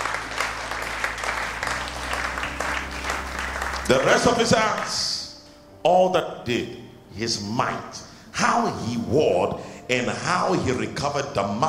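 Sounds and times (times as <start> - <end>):
audience clapping: 0.0 - 5.0
speech: 3.9 - 5.1, 5.8 - 11.6.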